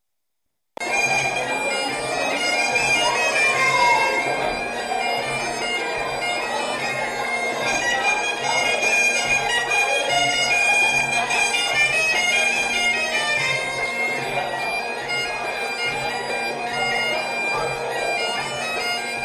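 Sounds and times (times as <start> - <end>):
Breton ton doubl plinn dance tune: 0.8 - 19.2.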